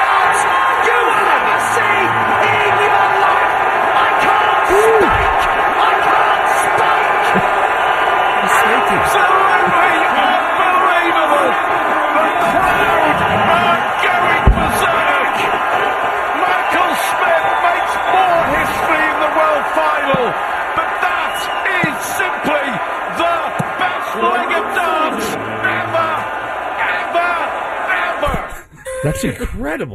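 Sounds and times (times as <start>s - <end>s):
darts crowd cheering wildly: 0.0s - 28.7s
speech: 29.2s - 29.9s.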